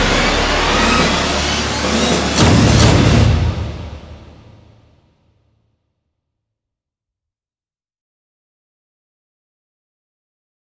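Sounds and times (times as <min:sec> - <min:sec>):
fanfare: 0:00.0 - 0:04.9.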